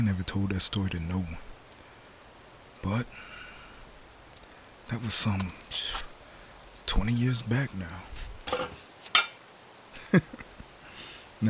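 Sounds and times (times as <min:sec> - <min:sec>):
speech: 0:00.0 - 0:01.5, 0:02.8 - 0:03.4, 0:04.9 - 0:06.1, 0:06.9 - 0:08.8, 0:10.1 - 0:10.4
pots and pans clanking while cooking breakfast: 0:08.5 - 0:09.4.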